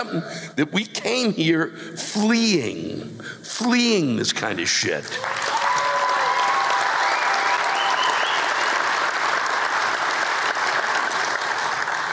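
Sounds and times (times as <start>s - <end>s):
speech: 0.0s - 5.6s
large audience applause: 5.1s - 12.1s.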